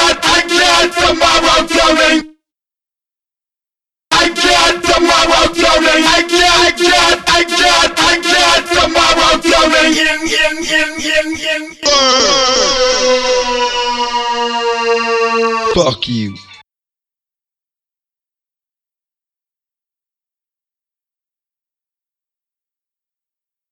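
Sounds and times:
person singing: 0:00.0 - 0:02.3, 0:04.1 - 0:16.5.

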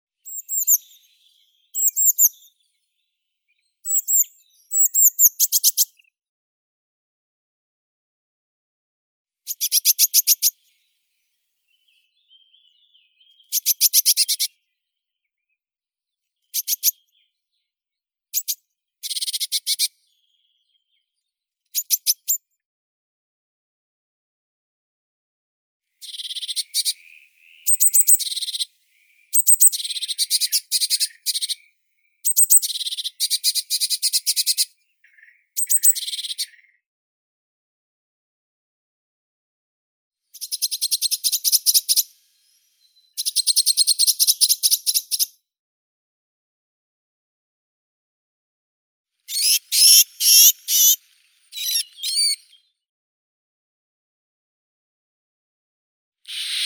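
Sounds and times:
blue tit Cyanistes caeruleus: 0:00.2 - 0:06.1, 0:09.5 - 0:11.0, 0:11.7 - 0:14.7, 0:16.4 - 0:17.7, 0:18.4 - 0:21.1, 0:21.7 - 0:22.5, 0:26.0 - 0:36.8, 0:40.3 - 0:45.4, 0:49.3 - 0:52.7, 0:56.3 - 0:56.6.

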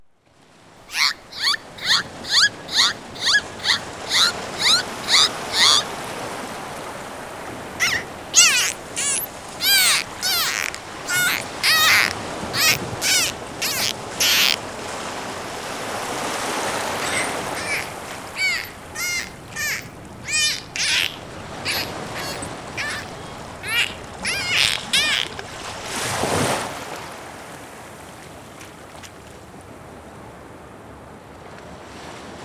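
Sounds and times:
dolphin calling: 0:00.9 - 0:26.3.

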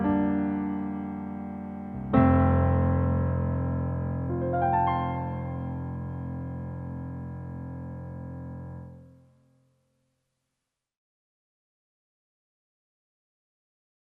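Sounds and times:
piano arrangement: 0:00.0 - 0:09.4.

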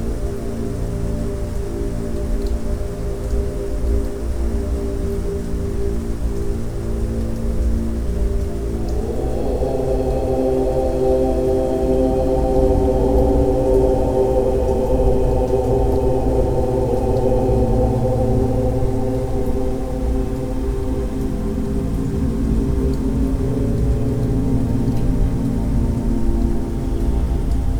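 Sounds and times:
rain: 0:00.0 - 0:27.7
om mantra chanting for meditation: 0:08.6 - 0:22.6.

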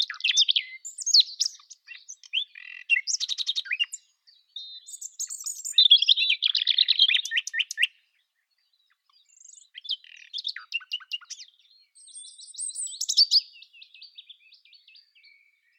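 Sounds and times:
nightingale singing: 0:00.0 - 0:15.7.

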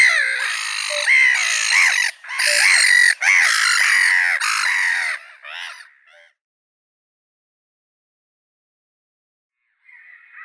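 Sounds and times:
black-headed gull Larus ridibundus: 0:00.0 - 0:06.3.

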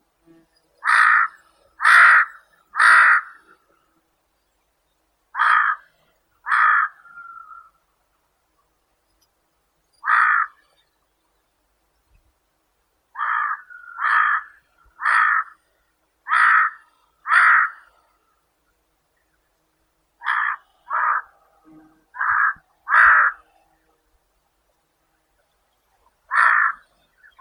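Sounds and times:
large-billed crow Corvus macrorhynchos: 0:00.8 - 0:03.6, 0:05.4 - 0:07.8, 0:10.0 - 0:10.7, 0:13.2 - 0:15.6, 0:16.3 - 0:18.0, 0:20.2 - 0:23.6, 0:26.3 - 0:27.3.

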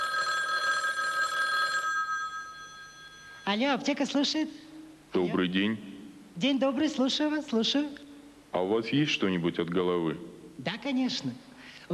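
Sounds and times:
telephone ringing on a call to a pharmacy through a loudspeaker: 0:00.0 - 0:04.0
speech: 0:03.5 - 0:11.9
faint hiss: 0:04.5 - 0:11.9.

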